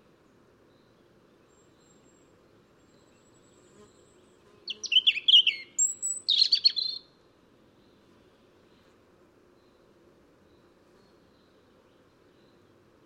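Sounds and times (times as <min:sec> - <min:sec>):
European robin (Erithacus rubecula) song with high warbled phrases: 0:04.7 - 0:07.0.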